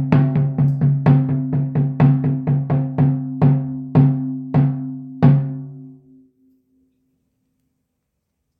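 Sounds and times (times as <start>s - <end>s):
frame drum: 0.0s - 5.9s.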